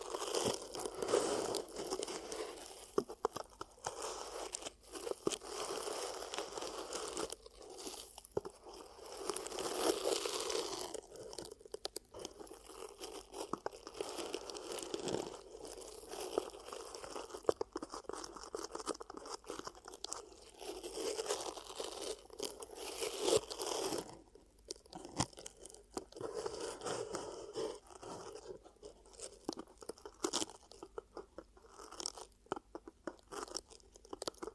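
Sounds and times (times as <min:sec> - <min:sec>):
ear cupping crackly rustling: 0:00.0 - 0:34.5.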